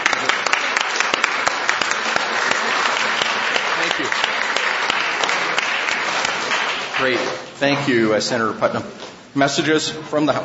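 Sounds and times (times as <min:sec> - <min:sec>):
group applauding: 0:00.0 - 0:07.8
speech: 0:07.0 - 0:10.4.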